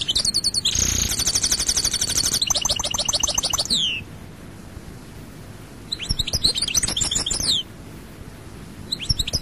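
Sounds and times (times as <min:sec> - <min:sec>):
goldfinch singing: 0:00.0 - 0:04.0, 0:05.9 - 0:07.6, 0:08.9 - 0:09.4.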